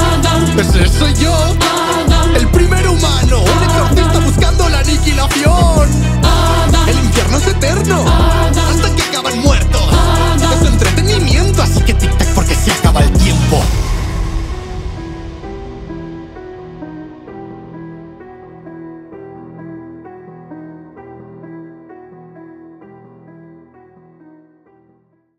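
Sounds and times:
rap music: 0.0s - 17.7s.

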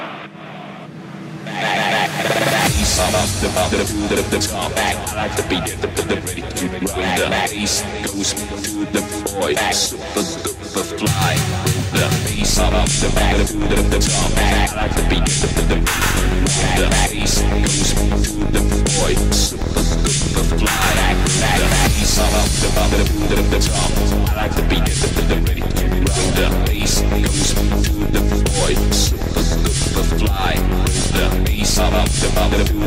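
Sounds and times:
italo disco eurodance music: 1.4s - 32.8s.

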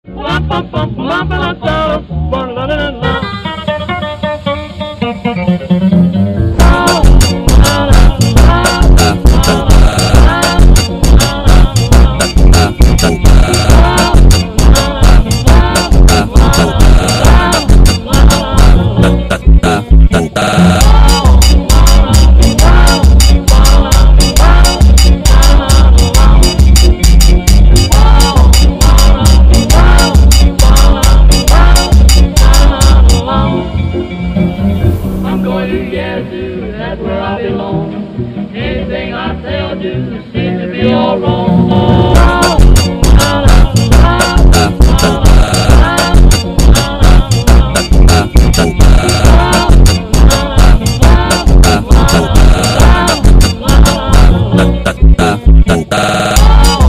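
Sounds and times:
slowed funk music: 0.2s - 56.8s.

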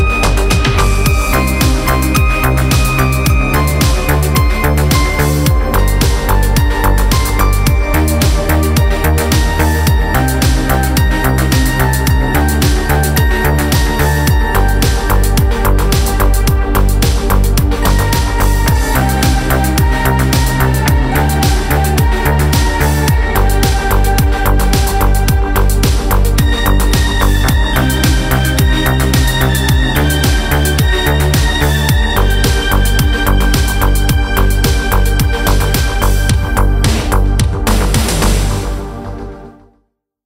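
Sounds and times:
modern beat on a Korg Pa900 keyboard: 0.0s - 39.4s.

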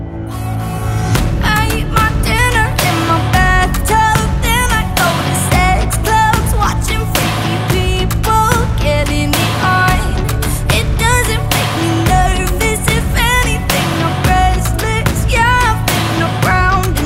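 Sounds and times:
rock music: 0.3s - 17.0s.

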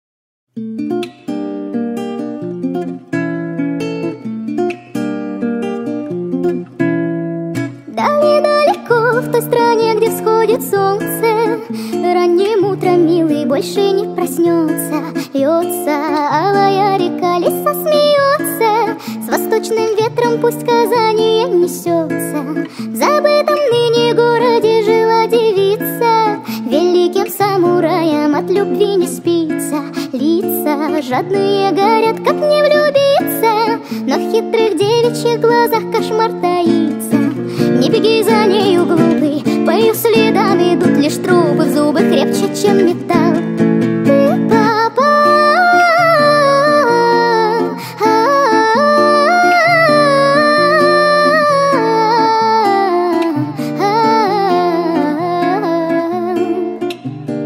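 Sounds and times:
sped-up acoustic music: 0.5s - 57.4s.

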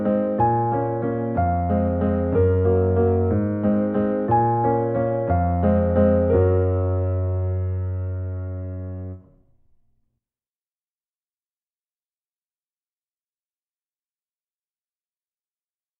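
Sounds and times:
piano cover: 0.0s - 9.8s.

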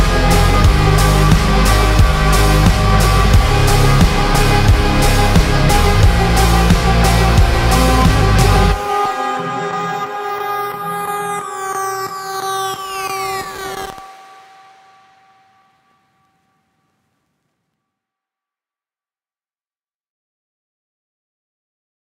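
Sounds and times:
slowed reverb music: 0.0s - 16.9s.

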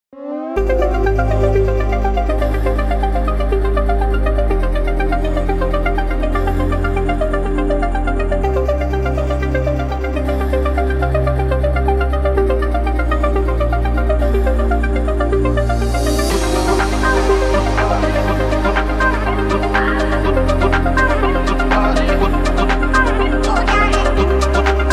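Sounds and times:
melodic techno remix: 0.6s - 24.9s.

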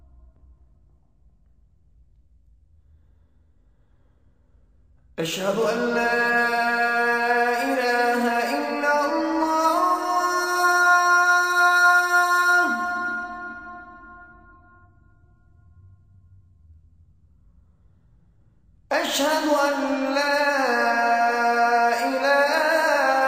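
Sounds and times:
azan call to prayer: 5.2s - 14.6s, 18.9s - 23.2s.

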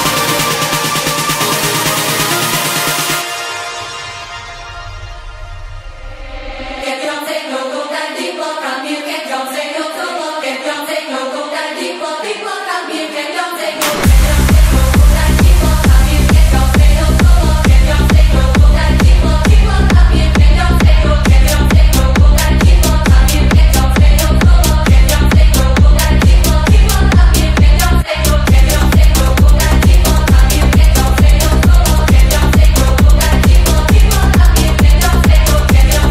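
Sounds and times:
techno music: 0.0s - 5.5s, 13.8s - 36.0s.

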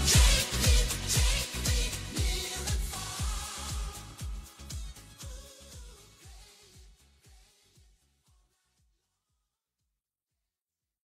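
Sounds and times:
Spanish guitar Italo disco music: 0.0s - 7.2s.

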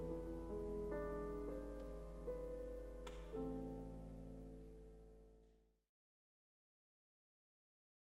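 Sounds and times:
piano music: 0.0s - 5.4s.

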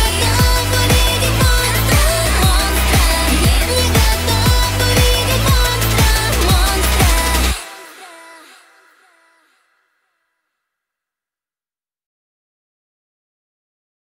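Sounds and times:
Vocaloid synthesized singing voice in Russian: 0.0s - 9.9s.

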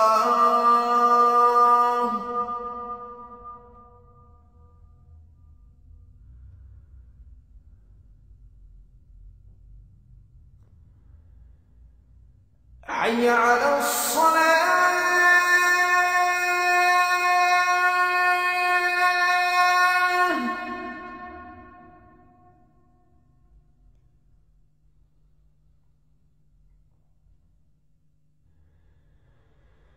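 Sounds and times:
Azan call to prayer: 0.0s - 4.0s, 12.8s - 22.6s.

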